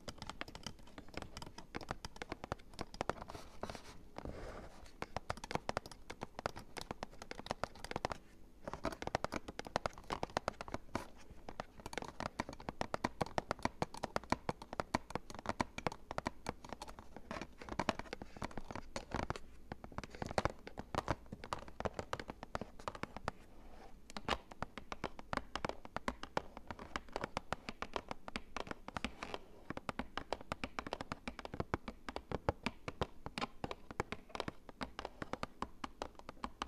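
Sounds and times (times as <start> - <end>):
fingers tapping cardboard: 0.0 - 36.6
faint scratching and brushing: 3.2 - 5.1, 22.7 - 24.0.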